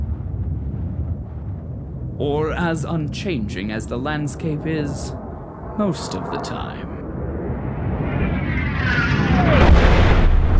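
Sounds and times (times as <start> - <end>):
meteorite impact explosion with a deep rumble: 0.0 - 3.2, 7.0 - 10.5
speech: 2.2 - 5.2, 5.8 - 6.9
descending whistle: 7.9 - 9.7.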